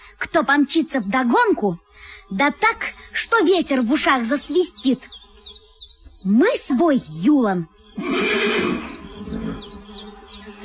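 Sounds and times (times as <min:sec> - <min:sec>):
speech: 0:00.2 - 0:05.2, 0:06.2 - 0:08.8
horse neighing: 0:08.0 - 0:09.7.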